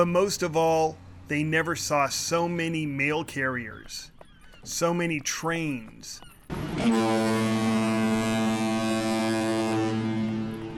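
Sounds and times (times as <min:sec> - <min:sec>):
speech: 0:00.0 - 0:07.6
steamboat horn blast: 0:06.5 - 0:10.7.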